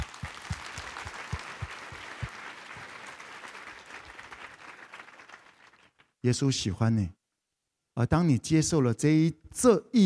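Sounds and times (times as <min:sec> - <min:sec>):
audience applause: 0:00.0 - 0:06.0
speech: 0:06.2 - 0:07.2, 0:08.0 - 0:10.0.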